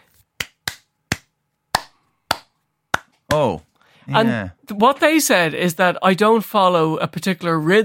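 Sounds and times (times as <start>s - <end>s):
arrhythmic hand claps: 0.0s - 3.6s
speech: 3.4s - 7.8s.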